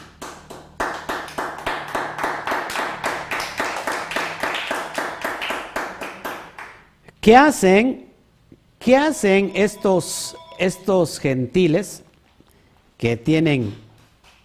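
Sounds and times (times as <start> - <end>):
audience clapping in steady unison: 0.0 - 6.9
speech: 7.2 - 8.0, 8.8 - 12.0, 13.0 - 13.8.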